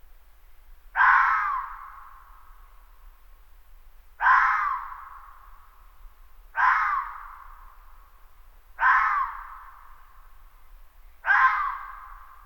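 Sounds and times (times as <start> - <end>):
red fox scream-like call: 1.0 - 2.0, 4.2 - 5.0, 6.6 - 7.5, 8.8 - 9.8, 11.2 - 12.4.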